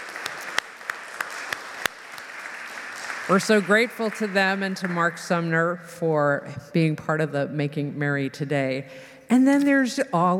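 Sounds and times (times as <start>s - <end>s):
audience applauding: 0.0s - 5.2s
speech: 3.3s - 10.3s.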